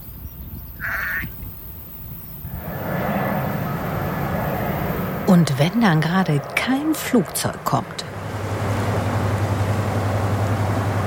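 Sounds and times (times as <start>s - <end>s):
river barge chugging past: 2.5s - 11.0s
speech: 5.3s - 8.1s.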